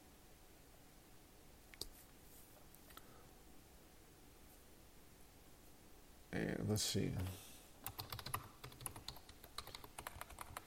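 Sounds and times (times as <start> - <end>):
speech: 6.3 - 7.4
typing on a computer keyboard: 7.8 - 10.6.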